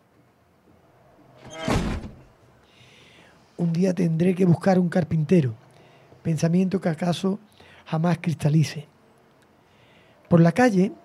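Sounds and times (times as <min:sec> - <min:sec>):
door that cannot physically shut scraping and swinging: 0:01.3 - 0:02.3
speech: 0:03.6 - 0:05.6, 0:06.2 - 0:08.9, 0:10.3 - 0:11.0.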